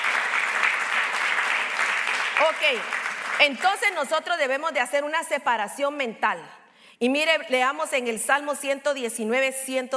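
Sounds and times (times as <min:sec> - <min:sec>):
audience applause: 0:00.0 - 0:03.6
speech: 0:02.4 - 0:09.9.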